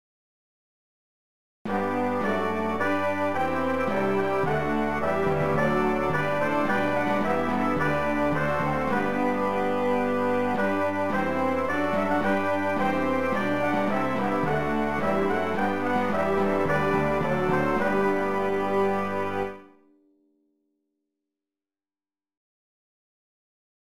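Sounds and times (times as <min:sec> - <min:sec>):
brass playing a hymn: 0:01.7 - 0:19.8.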